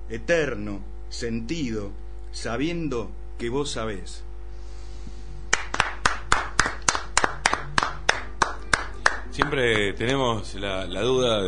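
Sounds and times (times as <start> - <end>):
speech: 0.1 - 4.3, 9.4 - 11.4
audience clapping after a poem: 5.5 - 10.4.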